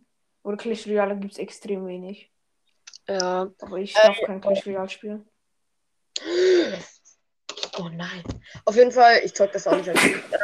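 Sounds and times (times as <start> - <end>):
speech: 0.5 - 2.4, 3.1 - 5.3, 7.8 - 10.4
loud sneeze: 9.7 - 10.4.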